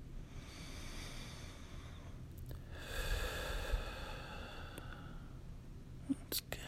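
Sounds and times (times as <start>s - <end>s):
person taking a slow deep breath: 0.2s - 5.5s
speech: 6.3s - 6.6s.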